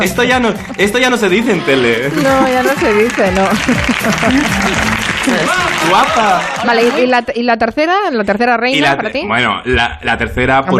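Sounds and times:
laughter: 0:00.0 - 0:07.2
studio audience applause: 0:00.0 - 0:07.3
speech: 0:00.0 - 0:10.7.

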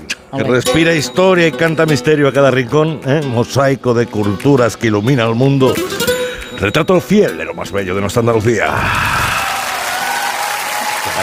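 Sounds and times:
speech: 0:00.3 - 0:09.3
canned applause sound effect: 0:08.6 - 0:11.2.

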